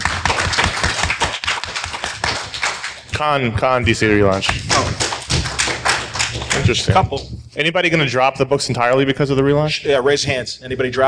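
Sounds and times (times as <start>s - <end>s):
audience clapping: 0.0s - 7.2s
speech: 3.2s - 5.1s, 6.7s - 11.0s.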